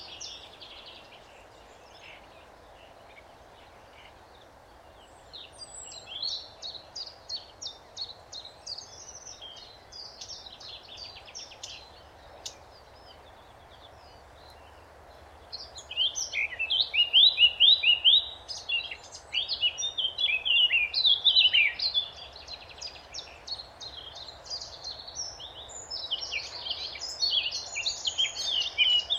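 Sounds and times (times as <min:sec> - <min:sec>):
background hiss: 0:00.0 - 0:29.1
Eurasian blackcap song: 0:05.0 - 0:14.8, 0:15.4 - 0:29.1.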